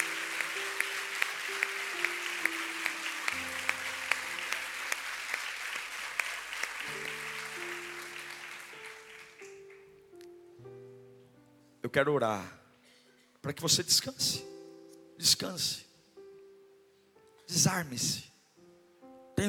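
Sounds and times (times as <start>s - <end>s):
audience applause: 0.0s - 9.9s
speech: 11.9s - 12.6s, 13.4s - 14.5s, 15.2s - 15.8s, 17.5s - 18.3s.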